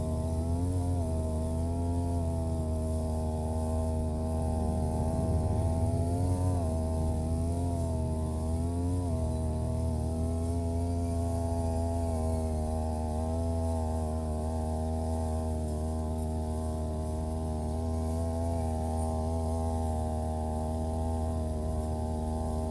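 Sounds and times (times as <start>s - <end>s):
brush cutter cutting grass along rows of green onions: 0.0s - 22.7s.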